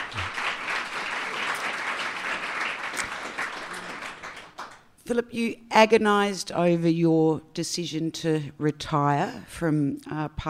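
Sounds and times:
audience applause welcoming a retired member of Parliament: 0:00.0 - 0:04.8
speech: 0:05.1 - 0:10.4.

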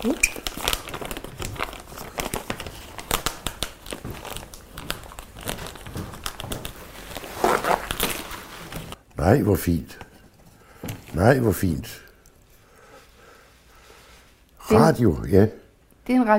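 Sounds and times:
speech: 0:00.0 - 0:00.3, 0:09.2 - 0:10.0, 0:11.2 - 0:12.0, 0:14.7 - 0:16.3
gift-wrapping paper crinkling as a present is unpacked: 0:00.0 - 0:09.0.

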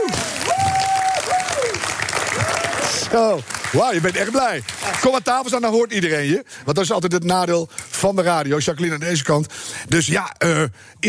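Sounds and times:
applause: 0:00.0 - 0:05.5
speech: 0:03.1 - 0:11.0.

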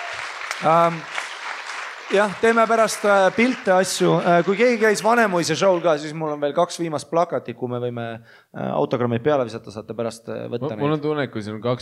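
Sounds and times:
audience clapping: 0:00.0 - 0:06.8
speech: 0:00.6 - 0:01.2, 0:02.1 - 0:11.7.

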